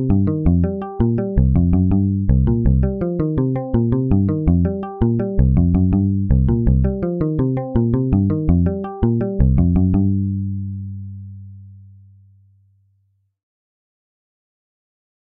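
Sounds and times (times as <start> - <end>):
blues jam: 0.0 - 10.2.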